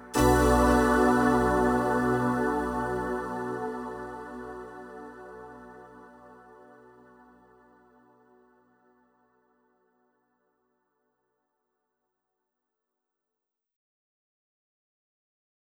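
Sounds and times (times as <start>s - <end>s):
drum and bass music: 0.0s - 5.4s.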